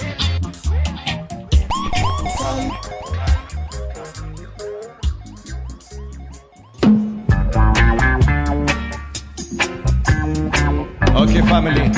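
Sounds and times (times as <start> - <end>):
loud bass-heavy backing: 0.0 - 11.9
music track: 0.0 - 11.9
siren sound effect: 1.6 - 8.2
speech: 11.6 - 11.9.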